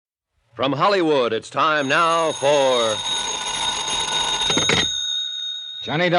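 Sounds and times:
speech: 0.6 - 3.4, 5.8 - 6.1
telephone ringing: 1.6 - 6.1.

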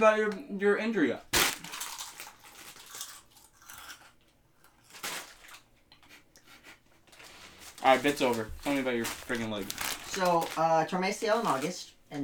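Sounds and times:
speech: 0.0 - 1.3, 7.8 - 12.2
slow crunching on potato chips: 1.3 - 5.7, 7.2 - 11.8.

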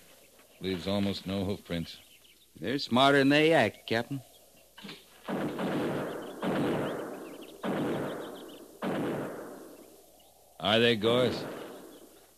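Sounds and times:
speech: 0.6 - 5.0, 10.7 - 11.6
buffalo gun shots: 5.3 - 10.0, 11.0 - 12.1.

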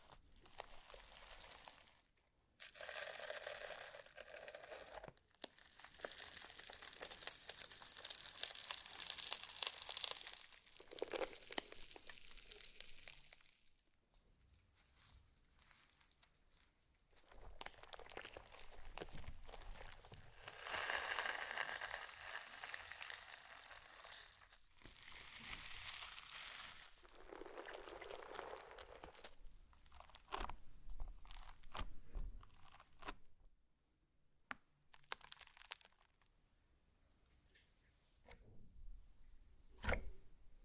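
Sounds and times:
slime being handled with wet crinkly squelching: 0.0 - 13.6, 17.1 - 33.2.

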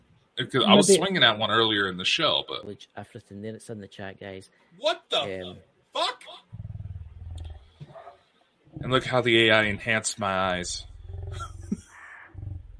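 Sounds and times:
speech: 0.4 - 6.4, 8.8 - 11.6
growling: 6.5 - 8.0, 8.8 - 12.7.

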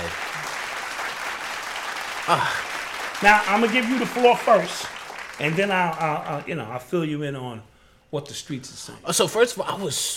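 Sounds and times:
audience applause: 0.0 - 6.8
speech: 2.3 - 10.1.

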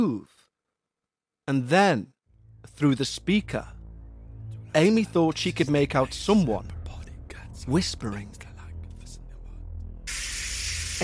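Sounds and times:
speech: 0.0 - 0.4, 1.5 - 3.8, 4.7 - 6.8, 7.6 - 8.5
shower running at full pressure: 10.1 - 11.0.

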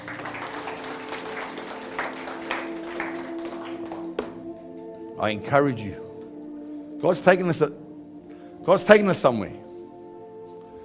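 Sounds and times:
audience clapping: 0.0 - 4.6
speech: 5.2 - 6.0, 7.0 - 7.8, 8.7 - 9.6.

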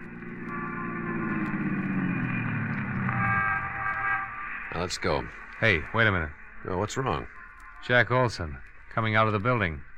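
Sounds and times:
squad car driving: 0.0 - 5.8
speech: 4.8 - 9.9.

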